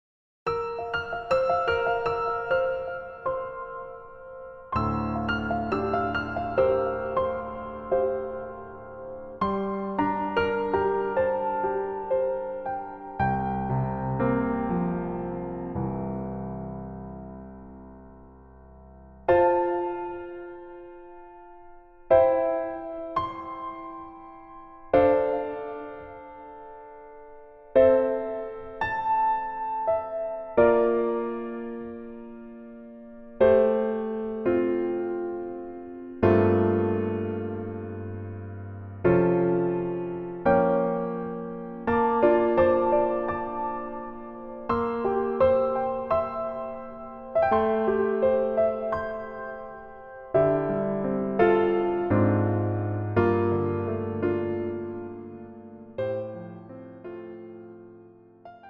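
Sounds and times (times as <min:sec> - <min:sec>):
piano music: 0:00.5 - 0:58.6.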